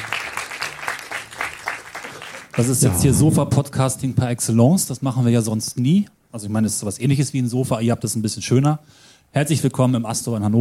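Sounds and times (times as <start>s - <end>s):
live audience applauding: 0.0s - 3.0s
speech: 2.6s - 10.6s.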